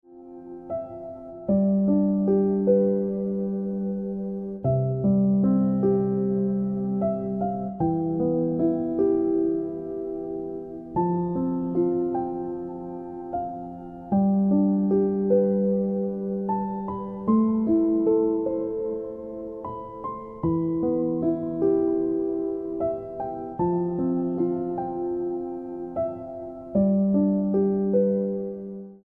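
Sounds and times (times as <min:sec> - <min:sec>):
piano ringtone music: 0:00.1 - 0:29.0.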